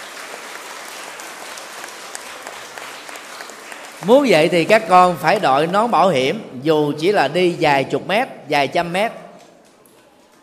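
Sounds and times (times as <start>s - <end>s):
crowd applause: 0.0s - 6.4s
speech: 4.0s - 9.2s.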